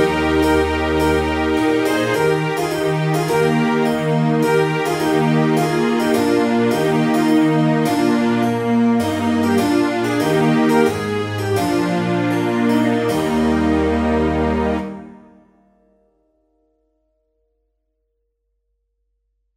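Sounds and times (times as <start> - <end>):
trumpet tune: 0.0 - 15.4.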